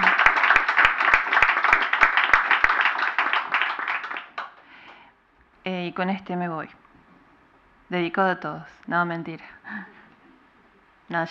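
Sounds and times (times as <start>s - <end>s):
audience applause: 0.0s - 5.0s
speech: 6.0s - 6.8s, 7.9s - 10.0s.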